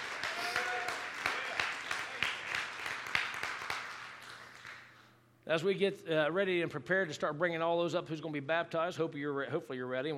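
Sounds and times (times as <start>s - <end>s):
crowd clapping: 0.0s - 5.1s
speech: 5.5s - 10.1s.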